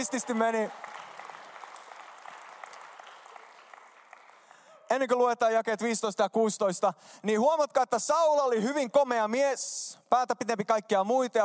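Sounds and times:
speech: 0.0 - 0.9, 4.9 - 11.4
audience applause: 0.0 - 4.7.

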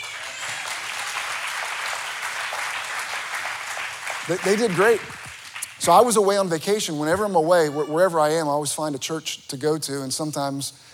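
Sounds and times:
audience applause: 0.0 - 6.0
speech: 4.3 - 5.2, 5.8 - 10.9.

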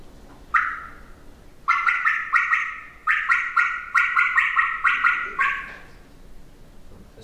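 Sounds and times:
turkey call working a bubble cut for Merriam's: 0.5 - 5.9.

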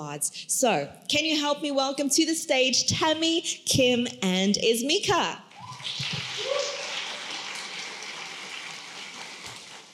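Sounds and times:
speech: 0.0 - 6.1
crowd clapping: 5.6 - 9.9.

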